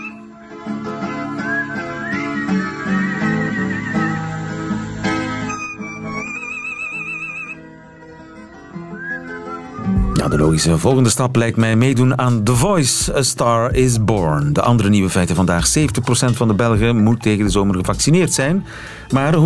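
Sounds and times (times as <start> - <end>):
repeating guitar riff: 0.0 - 13.1
pet singing along: 1.3 - 7.6
speech: 10.3 - 19.4.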